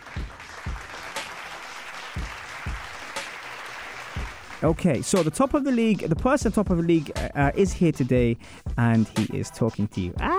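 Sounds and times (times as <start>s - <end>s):
round of applause: 0.0s - 4.7s
speech: 4.6s - 10.3s
dull low thumps: 6.1s - 10.3s.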